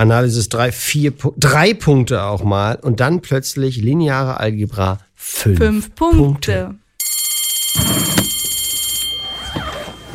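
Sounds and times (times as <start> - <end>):
speech: 0.0 - 6.8
shrill electronic bell ringing: 7.0 - 10.1.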